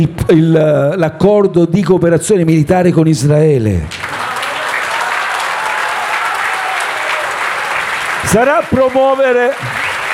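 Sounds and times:
speech: 0:00.0 - 0:04.1, 0:08.3 - 0:09.9
audience applause: 0:03.9 - 0:10.1.

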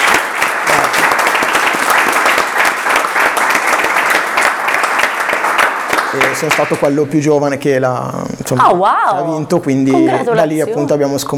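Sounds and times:
applause: 0:00.0 - 0:07.0
speech: 0:06.2 - 0:11.3.

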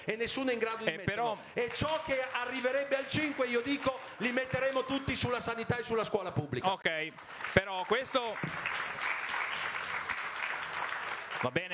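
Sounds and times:
speech: 0:00.0 - 0:09.0, 0:11.4 - 0:11.7
audience applause at the Festa dell'Unità: 0:01.6 - 0:04.8, 0:07.2 - 0:11.7.

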